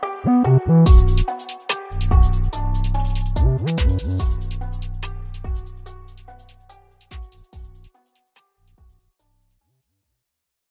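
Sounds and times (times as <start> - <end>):
instrumental Japanese trap drill hip hop beat: 0.8 - 7.9.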